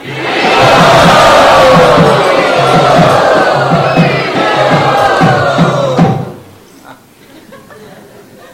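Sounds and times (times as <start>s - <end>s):
festival crowd chanting at a bhakti celebration: 0.0s - 6.5s
laughter: 7.2s - 8.5s.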